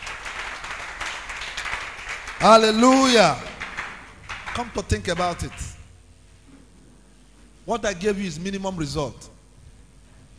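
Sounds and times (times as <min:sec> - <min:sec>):
congregation clapping in a church service after a prayer: 0:00.0 - 0:06.0
speech: 0:02.4 - 0:03.5, 0:04.6 - 0:05.8, 0:07.7 - 0:09.4.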